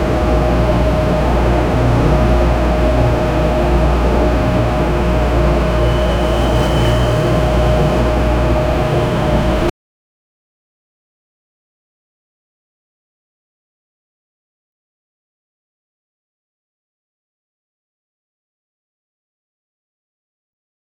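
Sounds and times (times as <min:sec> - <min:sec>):
factory noise: 0:00.0 - 0:09.7.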